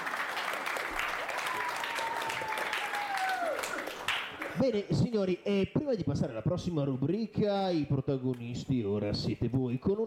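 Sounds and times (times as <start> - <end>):
audience applause in a school class radio show: 0.0 - 4.7
speech: 4.6 - 10.0.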